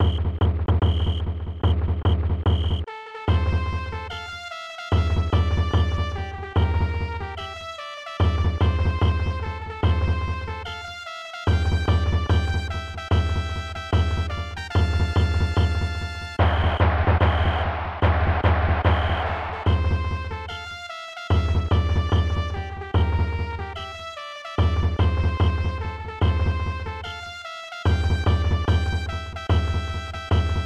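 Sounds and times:
march music with hits: 0.0 - 30.6.

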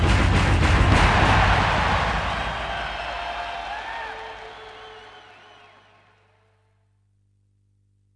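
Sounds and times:
crowd chants: 0.8 - 6.3.

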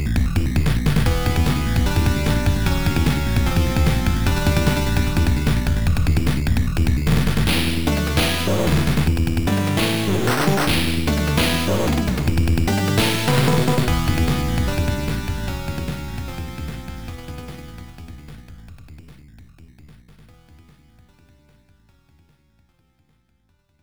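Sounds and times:
boss battle background music: 0.0 - 19.0.

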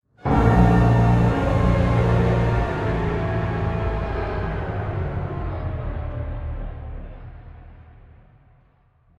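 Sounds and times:
game over music: 0.3 - 5.5.

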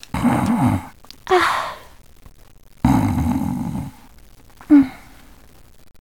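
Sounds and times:
person snoring: 0.1 - 1.9, 2.8 - 4.1.

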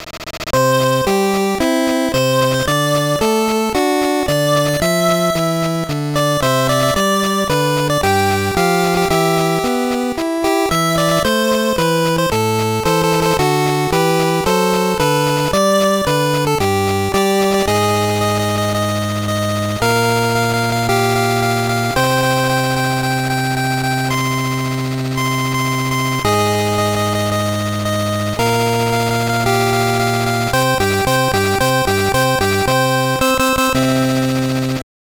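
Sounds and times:
background music: 0.6 - 34.8.

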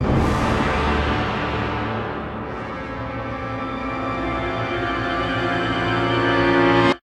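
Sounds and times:
nice music sting: 0.0 - 7.0.

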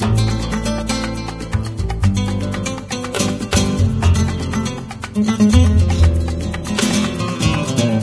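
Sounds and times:
Mexican music: 0.0 - 8.0.

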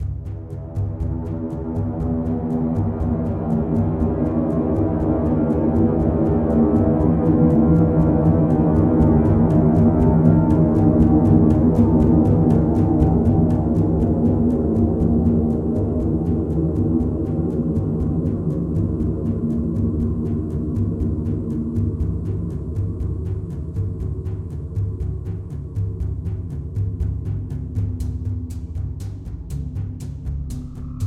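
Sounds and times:
ambient drums: 0.0 - 31.0.

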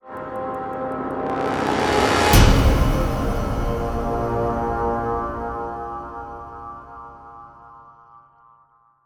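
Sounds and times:
power swell music sting hit: 1.0 - 7.3.

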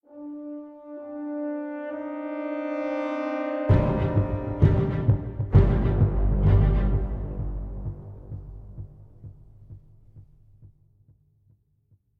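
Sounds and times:
string instrument: 2.8 - 9.2.

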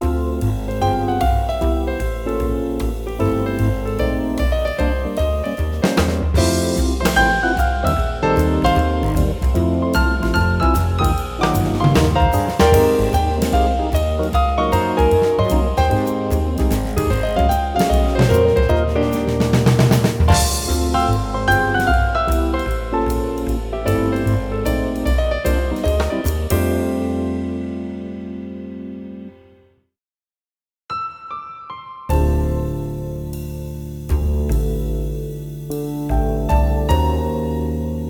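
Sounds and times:
bar music: 0.0 - 29.4, 32.1 - 38.0.

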